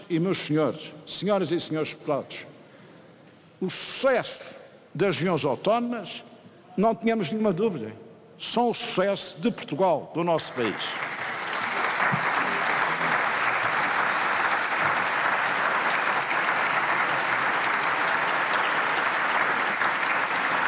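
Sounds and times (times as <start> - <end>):
speech: 0.1 - 2.6, 3.6 - 11.1
applause from the PS and PSD benches in parliament: 10.5 - 20.6.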